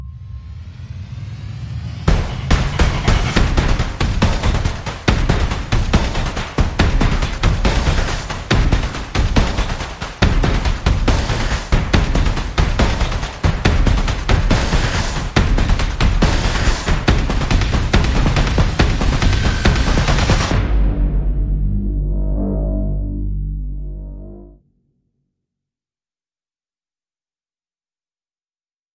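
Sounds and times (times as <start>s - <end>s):
sound effects: 0.0s - 4.9s, 16.4s - 24.7s
percussion: 0.0s - 22.0s.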